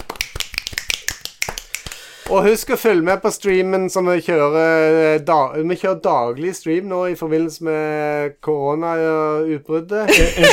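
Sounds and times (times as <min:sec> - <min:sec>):
clapping: 0:00.0 - 0:02.5
speech: 0:02.3 - 0:10.5
laughter: 0:10.1 - 0:10.5.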